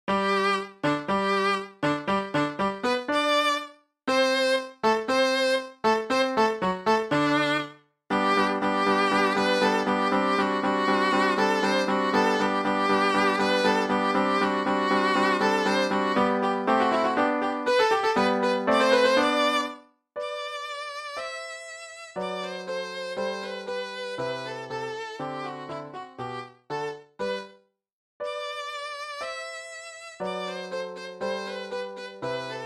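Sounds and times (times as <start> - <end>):
violin solo: 0.1 - 27.6, 28.2 - 32.6.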